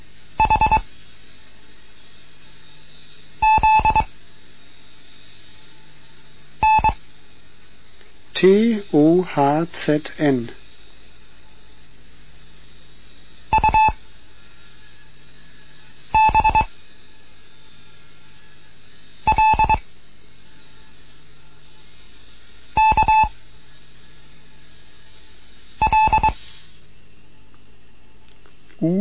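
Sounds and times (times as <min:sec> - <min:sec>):
Morse code practice tones: 0:00.4 - 0:00.8, 0:03.4 - 0:04.1, 0:06.6 - 0:07.0, 0:13.5 - 0:14.0, 0:16.2 - 0:16.7, 0:19.3 - 0:19.8, 0:22.8 - 0:23.3, 0:25.8 - 0:26.4
speech: 0:08.4 - 0:10.6.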